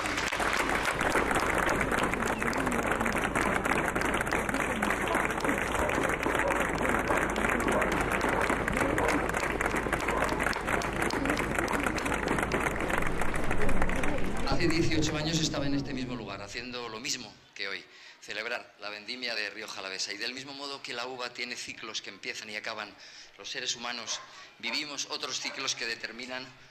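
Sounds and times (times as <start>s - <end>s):
audience applause: 0.0s - 16.6s
speech: 15.8s - 17.4s, 18.6s - 26.6s.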